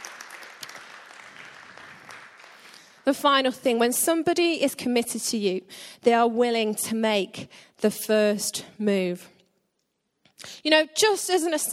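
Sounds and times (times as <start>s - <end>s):
congregation clapping during a sermon: 0.0s - 3.1s
speech: 3.1s - 9.4s, 10.4s - 11.7s.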